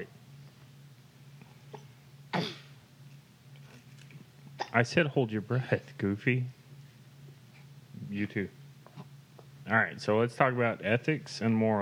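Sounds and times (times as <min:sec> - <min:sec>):
speech: 0:00.0 - 0:00.2, 0:04.8 - 0:06.6, 0:08.2 - 0:08.6, 0:09.7 - 0:11.8
low steady hum: 0:00.0 - 0:11.8
person hiccuping after drinking soda from a can: 0:01.7 - 0:02.7, 0:04.6 - 0:04.8.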